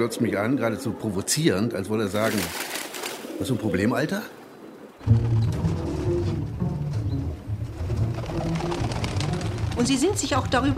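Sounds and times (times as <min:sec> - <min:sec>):
speech: 0:00.0 - 0:02.8, 0:03.4 - 0:04.4, 0:05.0 - 0:05.4, 0:09.8 - 0:10.7
pigeons squabbling: 0:00.0 - 0:06.0, 0:06.9 - 0:10.7
pigeons flapping wings: 0:02.1 - 0:03.7, 0:05.0 - 0:06.1, 0:07.6 - 0:10.7.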